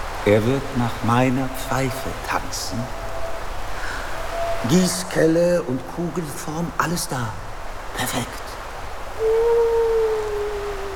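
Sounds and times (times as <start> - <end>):
speech: 0.2 - 3.0, 4.6 - 7.4, 8.0 - 8.4
wolf howling: 2.9 - 5.0, 9.2 - 10.9.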